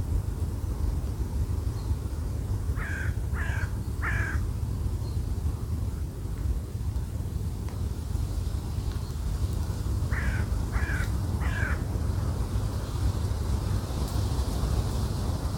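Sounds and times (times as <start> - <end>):
strong wind: 0.0 - 15.5
bird cawing: 2.8 - 4.4, 10.1 - 11.9.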